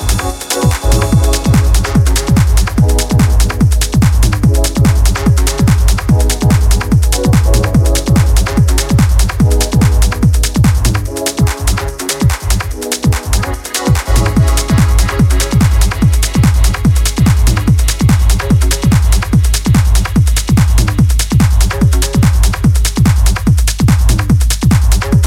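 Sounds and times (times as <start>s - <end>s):
electronic techno music: 0.0s - 25.2s.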